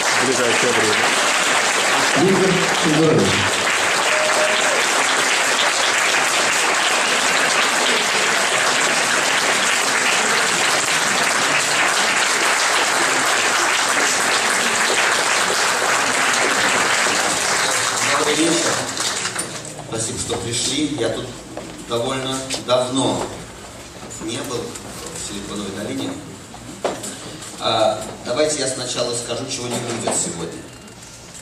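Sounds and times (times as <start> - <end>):
audience applause: 0.0 - 19.6
speech: 0.3 - 1.3, 2.2 - 3.6, 20.7 - 23.4, 24.5 - 26.3, 27.6 - 30.8.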